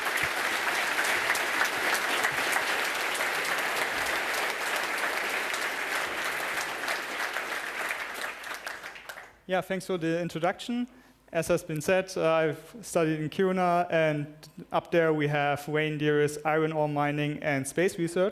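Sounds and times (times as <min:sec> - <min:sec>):
audience applause: 0:00.0 - 0:09.3
speech: 0:09.5 - 0:18.3.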